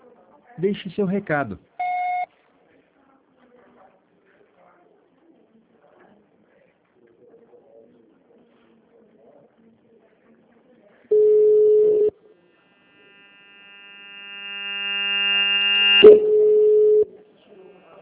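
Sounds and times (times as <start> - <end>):
speech: 0.6 - 1.7
voicemail beep: 1.8 - 2.3, 11.1 - 12.1, 14.5 - 17.1.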